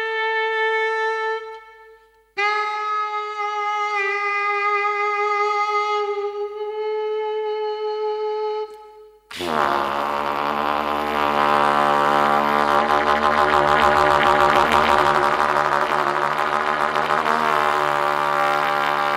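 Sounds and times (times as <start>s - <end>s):
trumpet: 0.0s - 19.1s.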